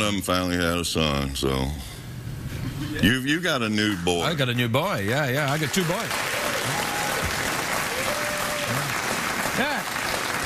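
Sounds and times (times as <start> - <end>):
speech: 0.0 - 2.0, 2.8 - 6.3
round of applause: 5.4 - 10.4.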